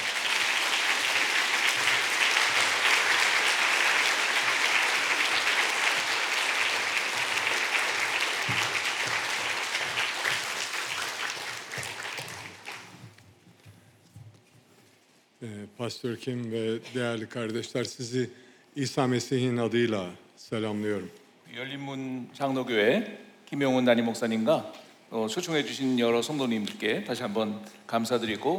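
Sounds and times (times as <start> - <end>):
audience applause: 0.0 - 13.1
speech: 15.8 - 28.5.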